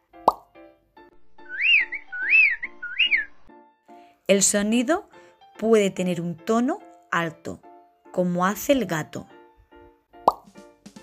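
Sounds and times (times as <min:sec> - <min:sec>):
sharp plop: 0:00.2 - 0:00.5, 0:10.2 - 0:10.6
birds singing high clear whistled phrases: 0:01.4 - 0:03.5
speech: 0:04.3 - 0:09.3.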